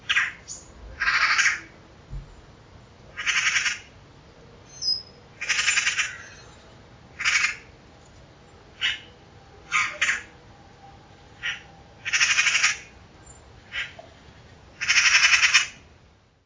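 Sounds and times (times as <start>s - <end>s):
Pica pica calling: 0.0s - 1.7s, 3.1s - 3.9s, 4.7s - 7.7s, 8.8s - 9.1s, 9.7s - 10.3s, 11.4s - 13.0s, 13.7s - 14.0s, 14.8s - 15.8s.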